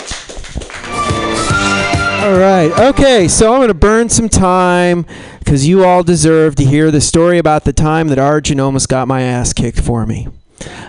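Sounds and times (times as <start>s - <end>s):
audience clapping for the next comic: 0.0s - 3.3s
speech: 2.3s - 10.8s.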